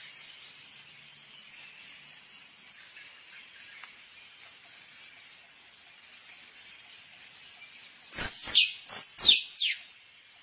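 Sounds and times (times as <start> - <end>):
squirrel chirping and whistling: 8.1 - 9.9.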